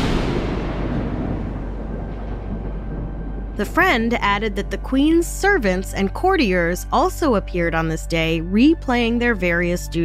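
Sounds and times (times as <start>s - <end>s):
thunder crash: 0.0s - 6.2s
speech: 3.6s - 10.0s.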